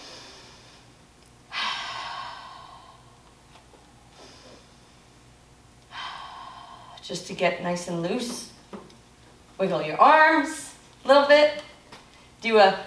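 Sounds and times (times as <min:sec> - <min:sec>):
deep breaths in through the nose and out the mouth during a vocal warm-up: 0:00.0 - 0:03.2, 0:03.8 - 0:05.2, 0:05.9 - 0:07.0
speech: 0:07.1 - 0:08.5, 0:09.6 - 0:11.7, 0:12.4 - 0:12.8.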